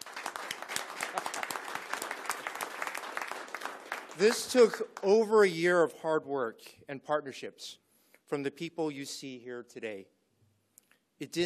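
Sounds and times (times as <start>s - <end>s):
crowd applause: 0.0s - 5.2s
speech: 4.2s - 10.2s, 11.2s - 11.4s.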